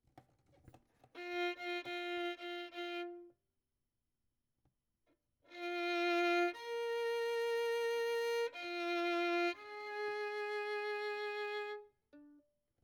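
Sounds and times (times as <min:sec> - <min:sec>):
violin: 0:01.1 - 0:03.4, 0:05.5 - 0:12.5.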